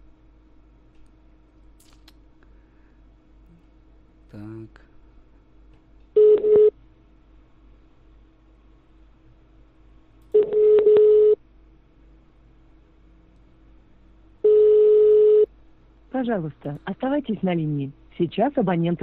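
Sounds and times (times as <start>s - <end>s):
speech: 4.3s - 4.9s, 16.2s - 19.0s
ringback tone on an outgoing phone call: 6.2s - 6.7s, 10.4s - 11.4s, 14.5s - 15.5s.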